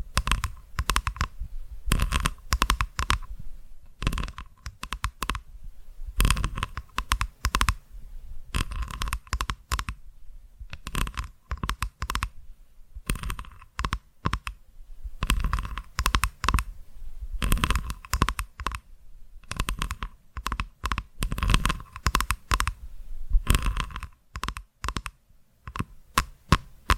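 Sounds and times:
dry clicky tapping: 0:00.0 - 0:03.3, 0:03.9 - 0:05.4, 0:06.2 - 0:07.8, 0:08.5 - 0:09.9, 0:10.7 - 0:12.3, 0:13.0 - 0:14.6, 0:15.2 - 0:16.7, 0:17.4 - 0:18.8, 0:19.5 - 0:22.8, 0:23.5 - 0:26.9
faint steady tone hum: 0:00.0 - 0:26.9.

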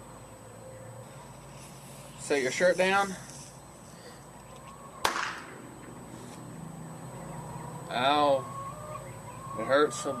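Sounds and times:
speech: 0:02.3 - 0:03.3, 0:08.0 - 0:08.6, 0:09.6 - 0:10.1
firecracker exploding as a bullet-hit effect: 0:05.0 - 0:05.6.

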